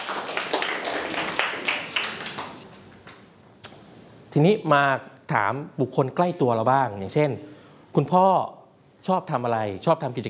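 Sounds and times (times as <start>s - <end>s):
classroom clapping: 0.0s - 3.2s
speech: 4.4s - 10.2s.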